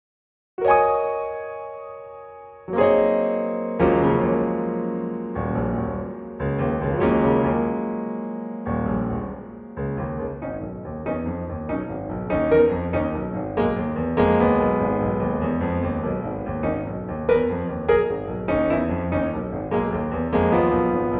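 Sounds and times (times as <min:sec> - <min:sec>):
solo piano: 0:00.6 - 0:21.1.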